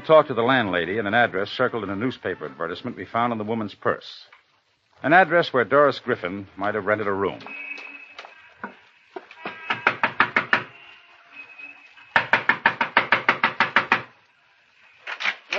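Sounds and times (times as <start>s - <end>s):
speech: 0.0s - 4.3s, 5.0s - 7.7s
knocking on a door: 9.5s - 10.7s, 12.2s - 14.1s.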